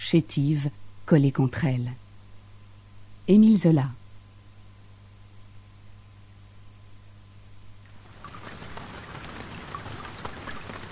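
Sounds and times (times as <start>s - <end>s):
speech: 0.1s - 2.0s, 3.3s - 4.0s
rain falling in the countryside: 7.9s - 10.9s.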